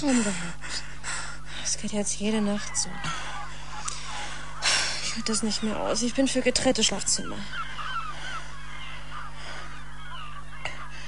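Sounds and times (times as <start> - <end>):
speech: 0.0 - 0.9, 1.7 - 3.3, 5.2 - 7.7
low hum: 0.0 - 11.0
seagulls screeching at night outside an open window: 2.4 - 11.0.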